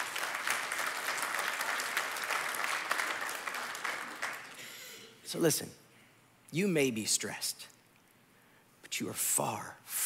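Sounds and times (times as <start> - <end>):
audience applause: 0.0 - 4.7
speech: 5.3 - 5.8, 6.5 - 7.7, 9.0 - 10.0.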